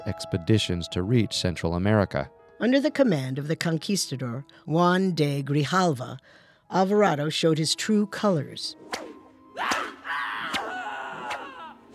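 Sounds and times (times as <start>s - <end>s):
speech: 0.0s - 9.7s
man screaming: 9.6s - 11.8s.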